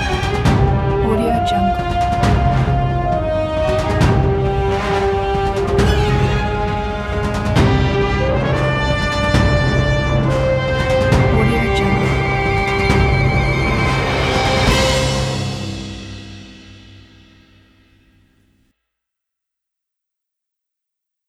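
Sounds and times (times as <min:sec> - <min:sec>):
dramatic action music: 0:00.0 - 0:17.6.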